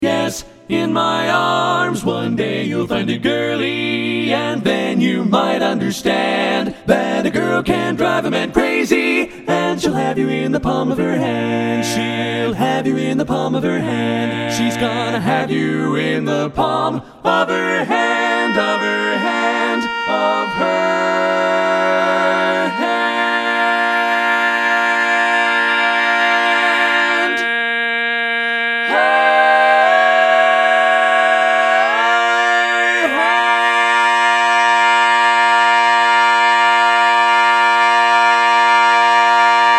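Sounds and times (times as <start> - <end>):
barbershop quartet singing all parts: 0.0 - 39.7.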